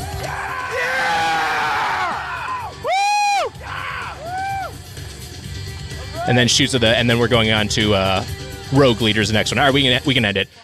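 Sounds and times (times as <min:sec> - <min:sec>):
crowd cheering: 0:00.0 - 0:04.8
high-pitched crowd screams: 0:00.2 - 0:04.7
speech: 0:06.3 - 0:10.6.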